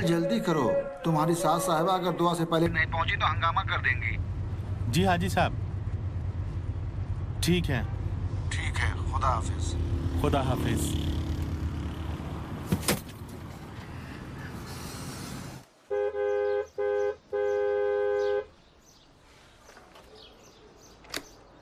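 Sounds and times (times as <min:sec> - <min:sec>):
speech: 0:00.0 - 0:04.3, 0:04.9 - 0:05.6, 0:07.4 - 0:11.2
quiet street noise: 0:00.0 - 0:21.6
car horn honking: 0:15.8 - 0:18.6.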